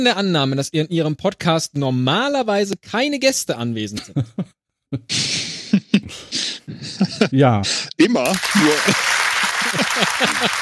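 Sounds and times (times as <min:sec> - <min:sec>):
speech: 0:00.0 - 0:10.5
laughter: 0:04.0 - 0:10.5
audience applause: 0:08.2 - 0:10.5.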